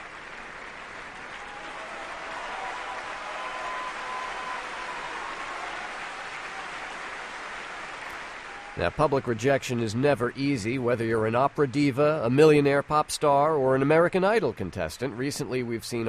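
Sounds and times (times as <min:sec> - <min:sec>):
opera audience applause: 0:00.0 - 0:14.0
opera audience booing: 0:01.4 - 0:09.0
speech: 0:08.8 - 0:16.0.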